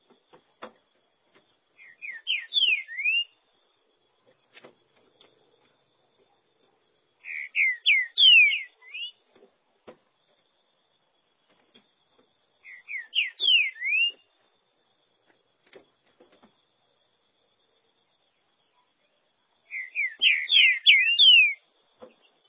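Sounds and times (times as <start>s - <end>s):
green-winged saltator whistled song: 1.8s - 3.4s, 7.2s - 9.2s, 12.6s - 14.3s, 19.7s - 21.6s.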